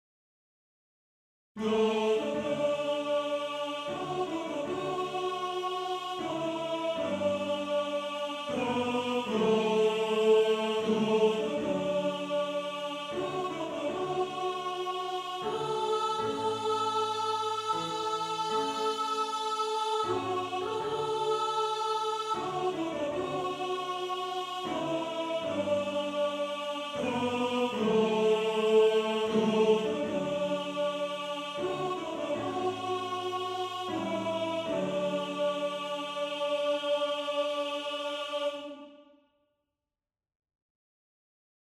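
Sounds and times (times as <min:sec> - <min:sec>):
tenor singing: 0:01.6 - 0:38.8.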